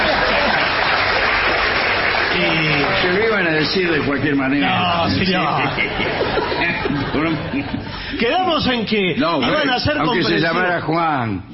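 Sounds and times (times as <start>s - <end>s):
laughter: 0.0s - 1.5s, 2.4s - 10.4s
audience applause during a comic stage routine: 0.0s - 6.7s
speech: 3.1s - 11.5s.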